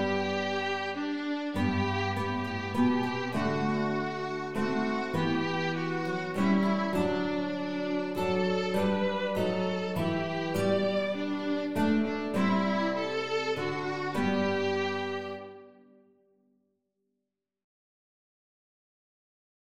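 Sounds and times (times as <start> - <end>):
three guitars in an ensemble: 0.0 - 15.7
flute in an ensemble: 0.0 - 15.8
violin in an ensemble: 0.0 - 16.0.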